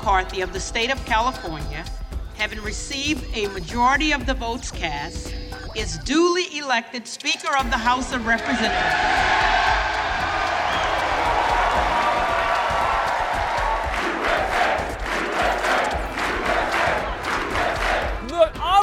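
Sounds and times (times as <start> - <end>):
speech: 0.0 - 9.6
cheering in the House chamber: 8.3 - 18.3
applause in the House chamber: 9.7 - 18.2.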